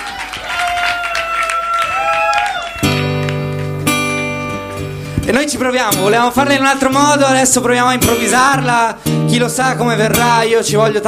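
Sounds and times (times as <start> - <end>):
audience applause and cheering: 0.0 - 5.2
speech: 5.3 - 11.0.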